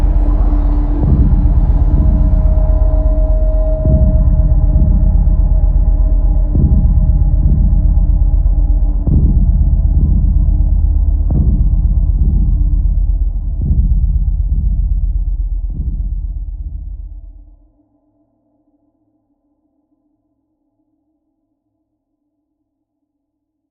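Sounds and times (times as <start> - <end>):
ambient combat music: 0.0 - 17.5.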